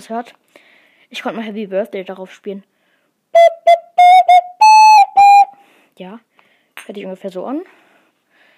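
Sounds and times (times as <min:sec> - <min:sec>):
speech: 0:00.0 - 0:02.7, 0:03.3 - 0:04.2, 0:06.0 - 0:06.3, 0:06.9 - 0:07.8
ocarina melody: 0:03.4 - 0:05.6.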